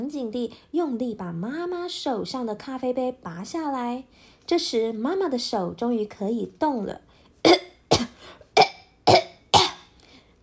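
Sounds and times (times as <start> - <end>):
speech: 0.1 - 7.6
person coughing: 7.4 - 10.0.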